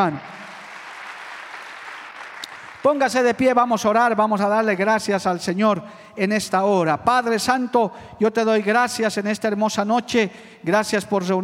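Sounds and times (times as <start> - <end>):
speech: 0.0 - 0.4, 2.8 - 11.4
audience applause: 0.0 - 3.2.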